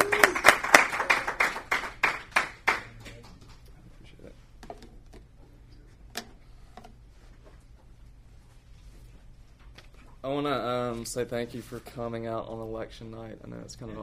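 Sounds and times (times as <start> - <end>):
audience applause: 0.0 - 3.2
speech: 11.0 - 14.0.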